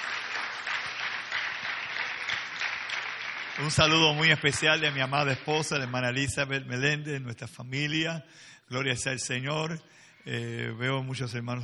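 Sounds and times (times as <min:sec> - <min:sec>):
audience applause: 0:00.0 - 0:06.7
speech: 0:03.6 - 0:11.6.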